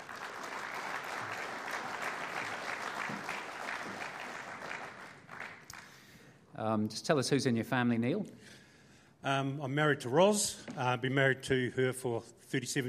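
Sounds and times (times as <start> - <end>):
audience applause: 0.0 - 6.1
speech: 6.6 - 8.6, 9.2 - 12.8.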